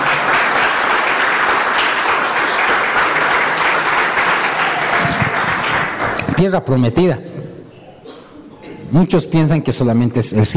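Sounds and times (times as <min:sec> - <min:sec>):
loud audience applause: 0:00.0 - 0:06.5
speech: 0:06.4 - 0:07.3, 0:08.9 - 0:10.5.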